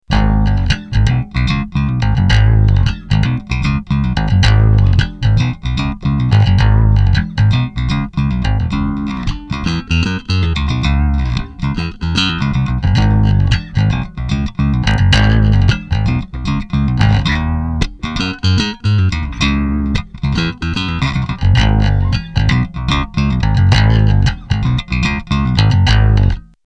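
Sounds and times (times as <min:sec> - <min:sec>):
musical riff: 0:00.1 - 0:26.5.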